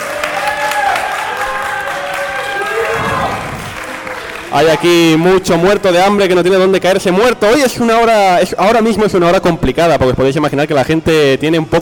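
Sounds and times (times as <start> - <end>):
cheers and whoops: 0.0 - 4.5
live audience applause: 0.0 - 6.8
speech: 4.5 - 11.7.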